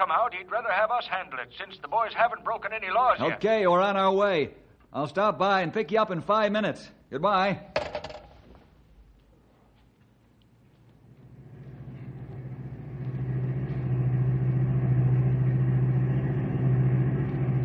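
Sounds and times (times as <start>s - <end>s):
speech: 0.0s - 7.9s
car engine driving: 11.2s - 17.6s.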